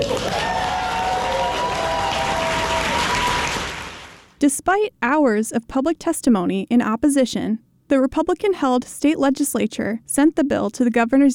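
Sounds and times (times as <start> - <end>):
cheering: 0.0 - 4.3
large crowd applauding: 0.0 - 4.4
speech: 4.4 - 11.3.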